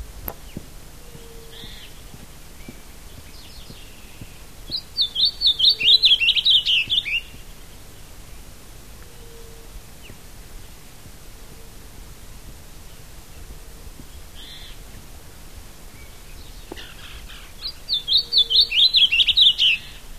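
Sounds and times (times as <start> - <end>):
Geothlypis aequinoctialis vocalizing: 0.4 - 8.4, 9.0 - 10.8, 12.9 - 15.0, 15.9 - 20.0.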